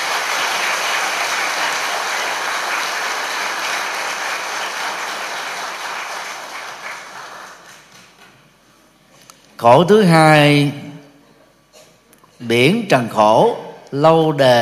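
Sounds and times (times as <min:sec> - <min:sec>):
audience applause: 0:00.0 - 0:08.2
speech: 0:09.6 - 0:10.8, 0:12.5 - 0:14.6.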